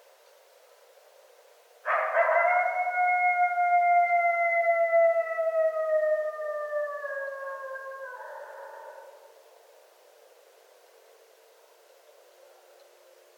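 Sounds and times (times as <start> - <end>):
coyotes howling at night: 1.9 - 9.3.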